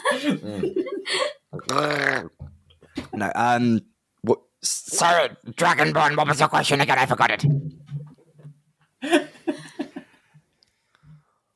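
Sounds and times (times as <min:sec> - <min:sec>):
speech: 0:00.1 - 0:02.4, 0:03.2 - 0:07.7, 0:09.0 - 0:09.3
person gargling water mid-drink: 0:01.6 - 0:02.4.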